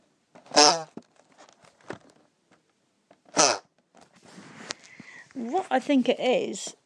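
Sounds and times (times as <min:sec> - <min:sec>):
chocolate box lid lowered making buzzy fart-like honks: 0:00.4 - 0:01.0, 0:03.3 - 0:03.7
speech: 0:05.4 - 0:06.8.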